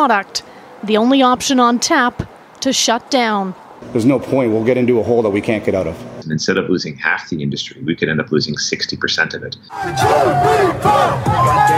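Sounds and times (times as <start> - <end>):
speech: 0.0 - 11.7
crowd cheering and shouting on a busy nightlife street: 9.7 - 11.7.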